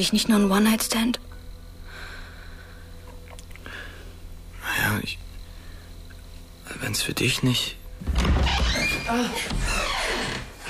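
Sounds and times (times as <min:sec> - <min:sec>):
speech: 0:00.0 - 0:01.4, 0:06.8 - 0:10.4
squealing, creaking door hinges: 0:08.0 - 0:10.6.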